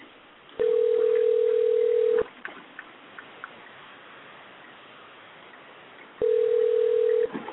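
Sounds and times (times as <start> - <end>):
telephone dialing a number: 0.6 - 2.2, 6.2 - 7.3.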